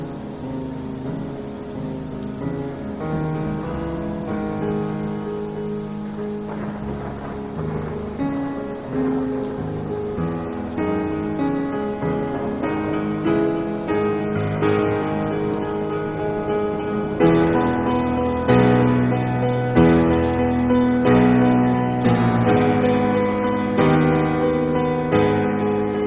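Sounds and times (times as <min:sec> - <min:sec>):
classical piano piece: 0:00.0 - 0:26.0
thunderstorm ambience: 0:00.0 - 0:26.0.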